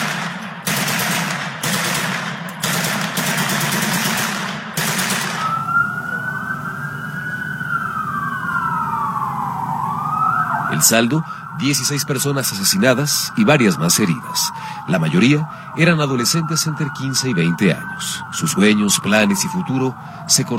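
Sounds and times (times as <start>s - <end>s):
automatic gunfire from armed gunmen at a birthday party: 0.0s - 5.6s
siren wailing: 5.1s - 20.5s
speech: 10.8s - 20.5s.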